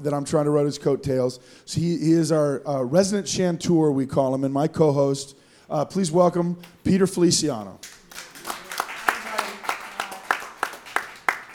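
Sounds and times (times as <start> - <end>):
speech: 0.0 - 8.0
live audience sparse applause: 7.6 - 11.5.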